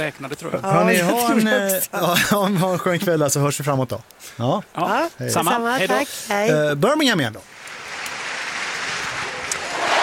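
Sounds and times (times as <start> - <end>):
speech: 0.0 - 7.6
stadium crowd cheering at Alexander Stadium: 9.2 - 10.0.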